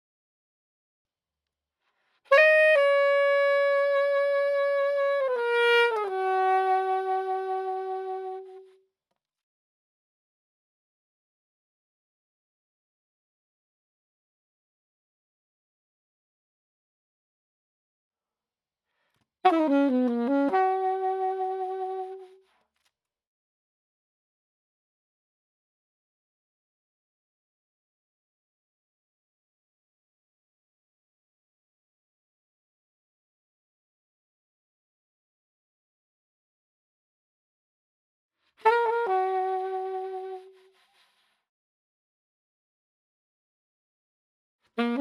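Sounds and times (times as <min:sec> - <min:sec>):
saxophone: 0:02.2 - 0:08.8, 0:19.4 - 0:22.6, 0:38.5 - 0:41.4, 0:44.7 - 0:44.9.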